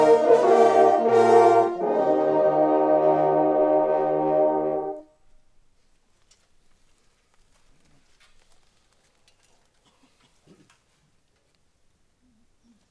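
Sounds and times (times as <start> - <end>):
solemn march: 0.0 - 5.2.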